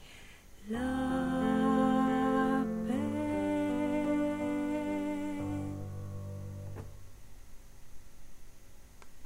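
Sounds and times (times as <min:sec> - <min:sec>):
alto singing: 0:00.6 - 0:07.2.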